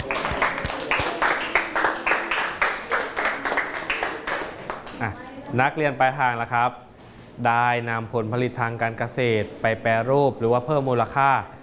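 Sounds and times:
classroom clapping: 0:00.0 - 0:05.1
speech: 0:05.0 - 0:11.6.

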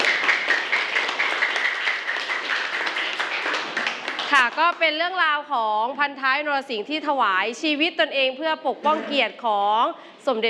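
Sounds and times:
classroom applause for student representatives: 0:00.0 - 0:04.7
speech: 0:04.4 - 0:10.4.

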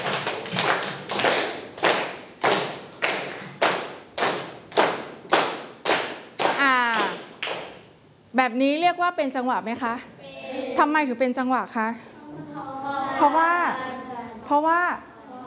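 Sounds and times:
children clapping hands: 0:00.0 - 0:07.8
speech: 0:08.4 - 0:10.1, 0:10.8 - 0:12.4, 0:13.2 - 0:13.8, 0:14.5 - 0:15.1.

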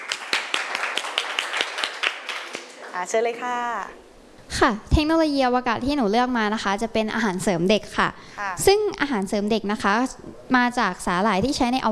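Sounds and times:
clapping: 0:00.0 - 0:02.8
speech: 0:03.0 - 0:11.9.

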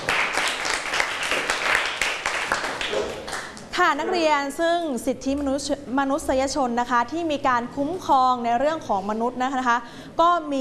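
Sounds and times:
students clapping: 0:00.0 - 0:03.7
speech: 0:03.8 - 0:10.5.

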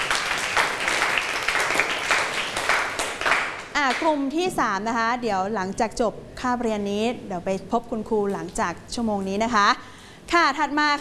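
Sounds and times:
classroom applause: 0:00.0 - 0:04.0
speech: 0:04.0 - 0:10.9.

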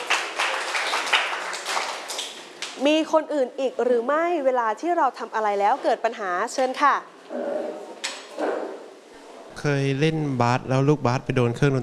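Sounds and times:
students clapping for a classmate in a classroom: 0:00.0 - 0:02.8
speech: 0:02.8 - 0:08.7, 0:09.6 - 0:11.8.

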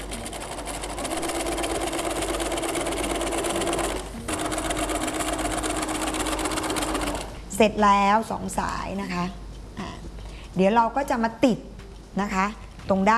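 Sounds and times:
sewing machine stitching folded pressed fabric: 0:00.0 - 0:07.4
speech: 0:07.6 - 0:09.4, 0:10.6 - 0:13.1.

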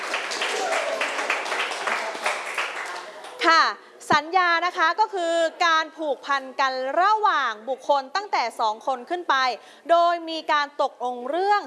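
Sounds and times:
students clapping: 0:00.0 - 0:03.4
speech: 0:03.5 - 0:11.6.

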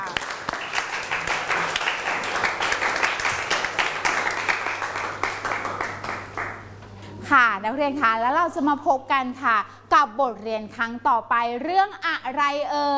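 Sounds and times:
students clapping hands: 0:00.0 - 0:06.7
speech: 0:07.6 - 0:12.9.

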